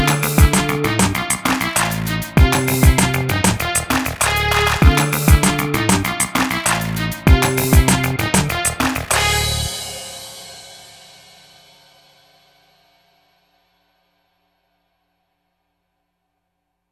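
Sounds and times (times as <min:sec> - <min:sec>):
hip hop music: 0:00.0 - 0:09.8.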